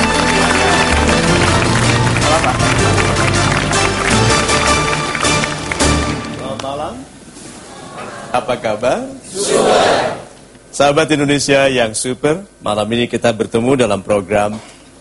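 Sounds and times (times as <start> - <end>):
audience applause: 0.0 - 6.8
speech: 8.4 - 14.8.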